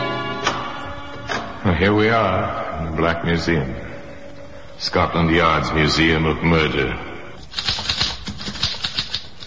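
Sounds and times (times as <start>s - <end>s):
speech: 1.8s - 3.9s, 4.8s - 7.1s
typewriter keys striking: 7.5s - 9.4s.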